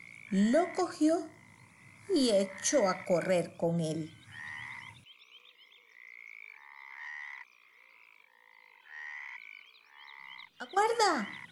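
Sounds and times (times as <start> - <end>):
frog croaking: 0.0 - 11.5
speech: 0.3 - 1.4, 2.1 - 4.2.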